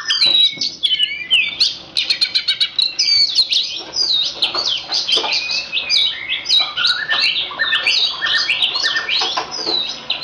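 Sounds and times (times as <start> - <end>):
Oriental magpie-robin song: 0.0 - 10.2.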